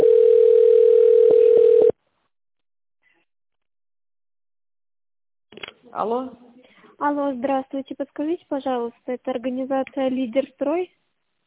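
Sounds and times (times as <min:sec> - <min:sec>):
telephone line tone while a call is transferred: 0:00.0 - 0:02.0
speech: 0:06.0 - 0:06.4, 0:07.0 - 0:11.0.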